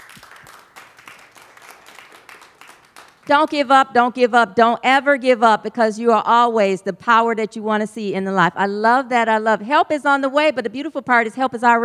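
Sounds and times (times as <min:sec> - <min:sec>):
audience clapping: 0:00.0 - 0:03.7
speech: 0:03.3 - 0:11.8.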